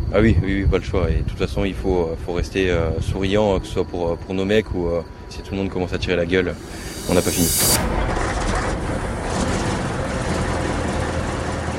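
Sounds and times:
speech: 0.1 - 8.3
heavy truck and armored vehicle engines starting up: 6.4 - 11.7.

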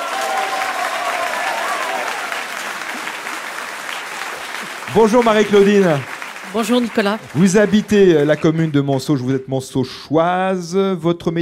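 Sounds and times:
audience applause: 0.0 - 9.5
speech: 4.9 - 11.4.

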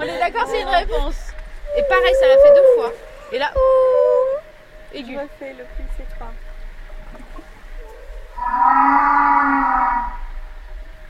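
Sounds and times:
laughter: 0.0 - 1.2
speech: 0.2 - 4.0, 4.9 - 6.5
humpback whale vocalization: 1.6 - 4.9, 7.7 - 11.0.

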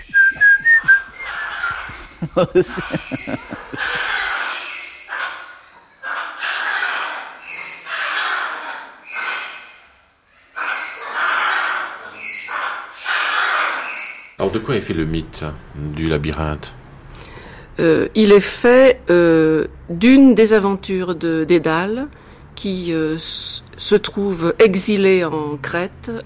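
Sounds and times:
soldiers whistling: 0.0 - 1.5
laughter: 0.0 - 4.4
parrots making harsh raspy calls: 1.0 - 14.4
speech: 2.4 - 3.5, 14.5 - 16.8, 17.8 - 26.2.

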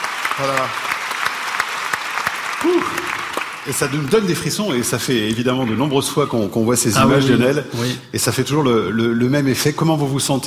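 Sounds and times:
audience applause: 0.0 - 4.9
speech: 0.4 - 0.9, 2.6 - 10.4.

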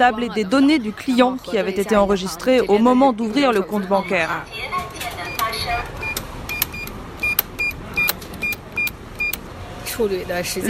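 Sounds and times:
speech: 0.0 - 5.0, 10.0 - 10.6
cash machine dispensing a banknote, whirring and clicking: 4.8 - 9.5.

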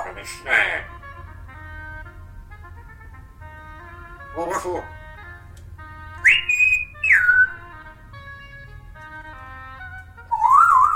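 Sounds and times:
low steady hum: 0.0 - 10.9
speech: 0.2 - 0.9, 4.4 - 5.0
parrot whistling: 6.2 - 7.6, 10.3 - 10.9.

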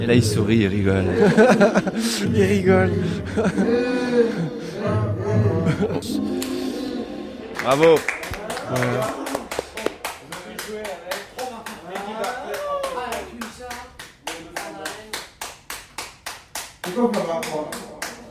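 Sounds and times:
speech: 0.0 - 6.6, 7.6 - 9.2
laughter: 0.9 - 6.4, 7.5 - 13.3
hands clapping: 6.4 - 6.6, 7.5 - 18.2.

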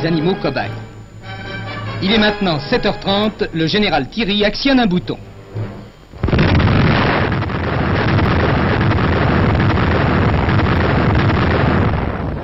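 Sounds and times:
speech: 0.0 - 1.0, 2.0 - 5.6
atomic bomb explosion from a newsreel: 6.1 - 12.4.

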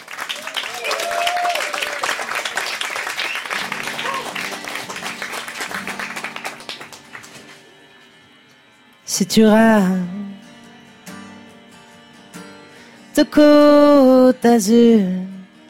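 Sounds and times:
audience applause: 0.0 - 7.6
speech: 9.2 - 10.2, 13.2 - 15.2.

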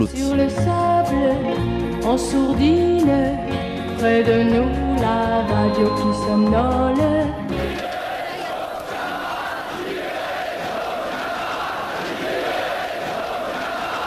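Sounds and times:
speech: 0.0 - 0.9, 2.1 - 7.6
large crowd shouting protest chants in May 1968: 7.7 - 14.0.

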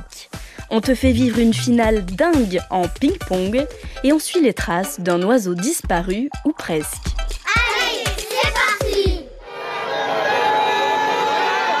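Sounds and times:
speech: 0.7 - 7.1
crowd celebrating after presidential election: 7.6 - 11.7.

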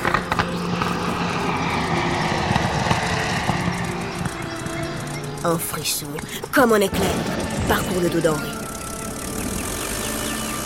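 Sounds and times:
propeller airplanes approaching and landing: 0.0 - 10.6
speech: 5.4 - 8.6.

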